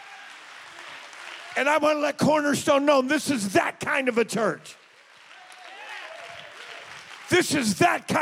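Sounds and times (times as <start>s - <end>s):
audience clapping hands: 0.0s - 8.2s
speech: 1.6s - 4.8s, 7.3s - 8.2s.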